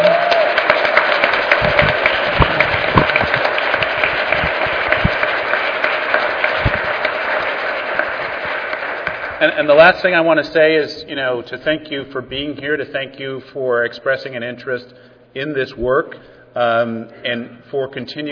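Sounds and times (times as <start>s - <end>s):
audience applause: 0.0s - 10.3s
speech: 9.4s - 18.2s.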